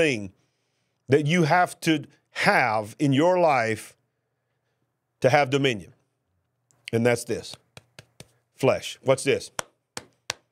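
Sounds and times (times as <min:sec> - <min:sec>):
speech: 0:00.0 - 0:00.4, 0:01.1 - 0:04.0, 0:05.2 - 0:06.0, 0:06.9 - 0:07.6, 0:08.6 - 0:09.7
preacher's hand claps during a sermon: 0:07.5 - 0:08.4, 0:09.5 - 0:10.5.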